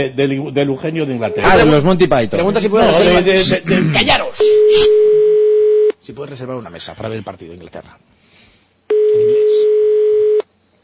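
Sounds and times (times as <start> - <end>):
speech: 0.0 - 5.1, 6.1 - 8.2
telephone line ringing tone of an unanswered call: 4.4 - 5.9, 8.9 - 10.5.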